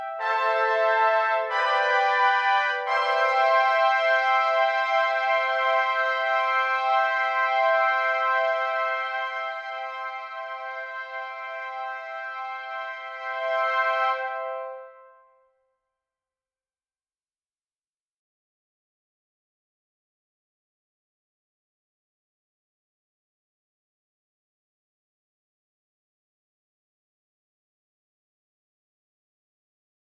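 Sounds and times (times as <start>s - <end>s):
trumpet: 0.0s - 15.6s.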